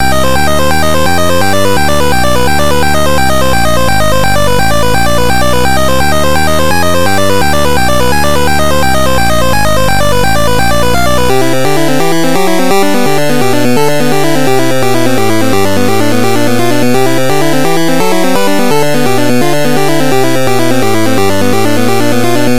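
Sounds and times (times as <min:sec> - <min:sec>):
8-bit music: 0:00.0 - 0:22.5.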